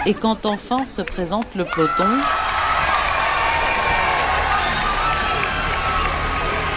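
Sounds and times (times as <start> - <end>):
speech: 0.0 - 2.6
roadside crowd cheering and applauding at a women's cycling race at a mountain climb: 1.4 - 6.7.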